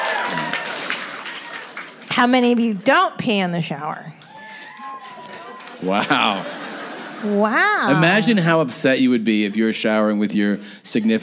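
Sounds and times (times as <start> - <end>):
laughter: 0.0 - 2.1, 4.2 - 11.2
live audience clapping: 0.0 - 3.1, 3.7 - 8.4
speech: 2.2 - 4.2, 5.8 - 6.6, 7.2 - 11.2.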